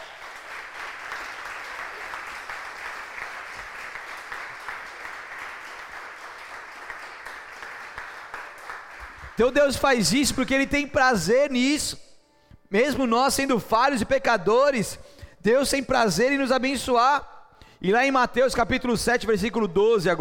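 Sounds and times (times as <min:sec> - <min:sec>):
audience applause: 0:00.0 - 0:09.4
speech: 0:09.4 - 0:12.1, 0:12.7 - 0:20.1.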